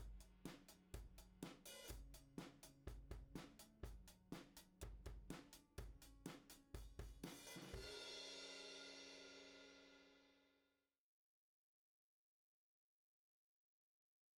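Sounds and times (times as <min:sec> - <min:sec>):
drums from right overhead microphone: 0:00.0 - 0:10.4.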